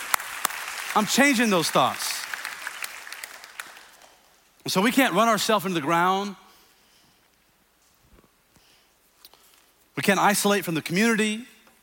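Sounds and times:
audience clapping hands: 0.0s - 4.4s
speech: 1.0s - 2.1s, 4.7s - 6.4s, 10.0s - 11.5s.

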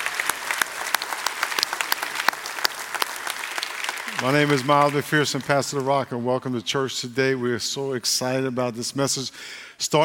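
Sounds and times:
standing church congregation applause: 0.0s - 6.6s
speech: 4.2s - 10.0s.

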